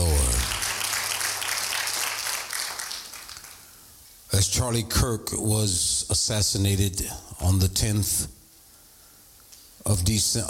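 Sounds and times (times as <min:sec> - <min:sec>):
audience clapping hands: 0:00.0 - 0:03.8
speech: 0:04.3 - 0:08.4, 0:09.8 - 0:10.4.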